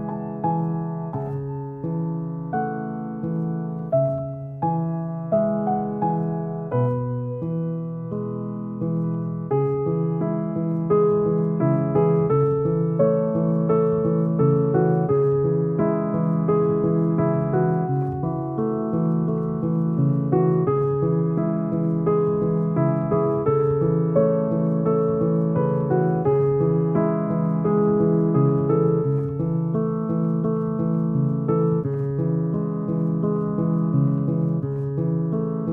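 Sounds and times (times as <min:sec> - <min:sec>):
relaxing classical piano music: 0:00.0 - 0:35.7.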